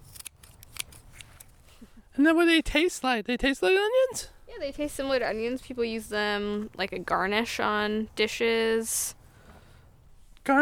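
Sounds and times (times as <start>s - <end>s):
scissors cutting plant roots: 0.0s - 1.6s
speech: 2.2s - 9.2s.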